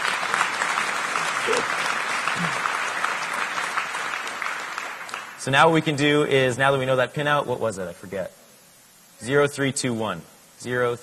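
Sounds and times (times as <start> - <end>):
audience clapping: 0.0 - 5.4
speech: 5.4 - 8.4, 9.2 - 11.0.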